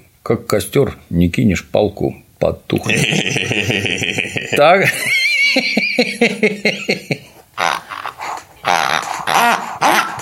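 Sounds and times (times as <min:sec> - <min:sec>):
speech: 0:00.2 - 0:07.8
laughter: 0:02.8 - 0:07.3
pigs grunting and squealing: 0:07.6 - 0:10.2.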